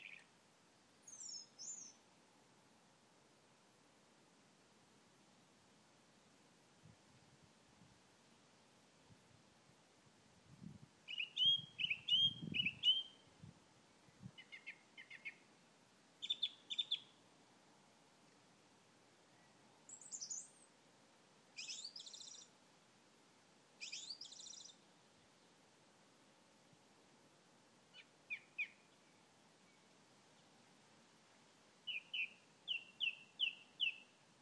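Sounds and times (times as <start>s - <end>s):
birdsong on a quiet evening: 0.0s - 0.3s, 1.1s - 2.0s, 11.1s - 13.3s, 14.4s - 15.5s, 16.2s - 17.2s, 19.9s - 20.7s, 21.6s - 22.5s, 23.8s - 24.8s, 28.0s - 30.6s, 31.8s - 34.2s.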